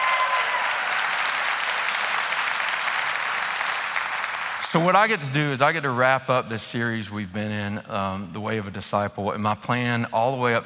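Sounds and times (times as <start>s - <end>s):
church congregation applauding: 0.0s - 5.0s
speech: 4.7s - 10.6s.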